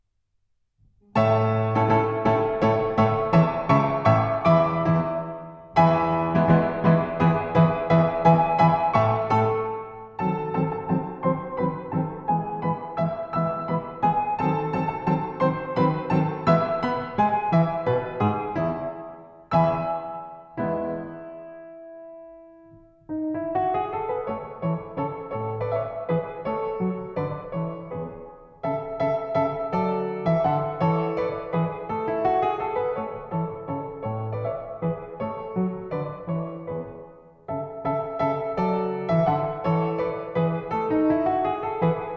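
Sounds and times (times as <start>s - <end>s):
pianoforte introduction: 0.8s - 42.1s.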